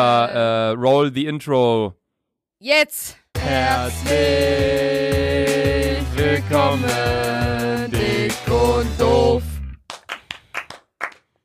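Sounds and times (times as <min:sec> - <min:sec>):
speech: 0:00.0 - 0:02.0, 0:02.6 - 0:09.5
hosts clapping after intro: 0:09.8 - 0:11.4.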